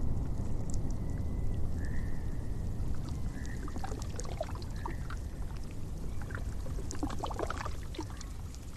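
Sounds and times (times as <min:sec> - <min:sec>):
water splashes: 0:00.2 - 0:08.7
water rushing: 0:02.6 - 0:08.7.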